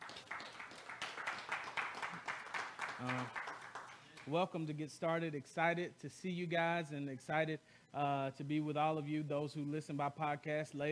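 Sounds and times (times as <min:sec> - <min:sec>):
crowd clapping: 0:00.0 - 0:04.4
speech: 0:03.0 - 0:03.4, 0:04.2 - 0:10.9.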